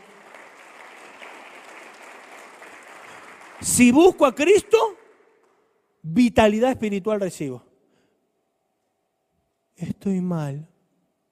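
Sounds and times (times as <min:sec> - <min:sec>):
audience applause: 0:00.0 - 0:05.6
speech: 0:03.6 - 0:05.0, 0:06.0 - 0:07.6, 0:09.8 - 0:10.7.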